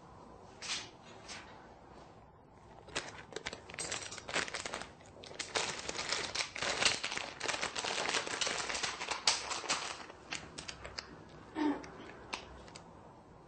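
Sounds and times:
shredded nori sprinkled over soba: 2.6s - 11.1s.

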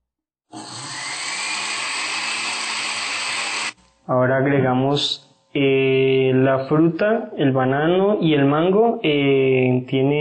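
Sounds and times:
blender mixing a cream: 0.5s - 3.8s
speech: 4.1s - 10.1s.

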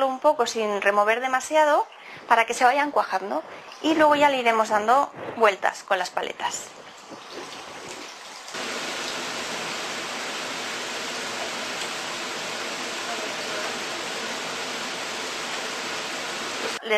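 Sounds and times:
speech: 0.2s - 7.2s
potatoes sizzling while frying in a pan: 8.5s - 16.8s.

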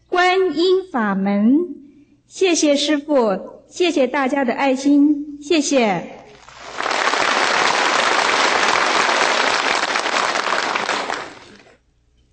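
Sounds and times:
speech: 0.5s - 6.2s
audience applause: 6.4s - 11.8s.

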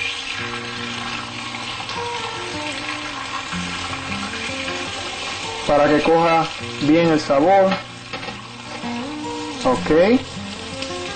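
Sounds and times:
onion, chili pepper and tomato sautéing in a pan: 0.0s - 11.1s
speech: 5.7s - 7.9s, 9.6s - 10.3s.

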